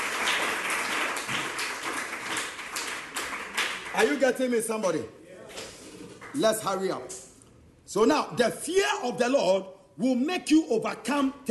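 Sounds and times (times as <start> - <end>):
audience clapping hands: 0.0 - 4.6, 5.6 - 7.2
speech: 4.0 - 5.2, 6.3 - 7.2, 7.9 - 11.5.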